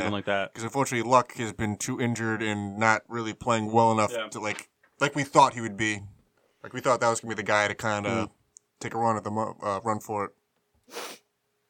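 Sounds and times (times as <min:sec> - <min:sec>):
speech: 0:00.0 - 0:11.2
sniffle: 0:10.8 - 0:11.3.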